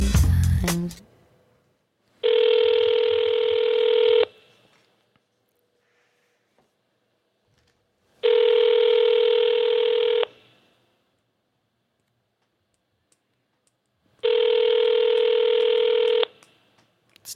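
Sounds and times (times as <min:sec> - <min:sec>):
speech: 0:00.6 - 0:01.1
telephone ringing on the line: 0:02.2 - 0:04.4, 0:08.2 - 0:10.4, 0:14.2 - 0:16.3.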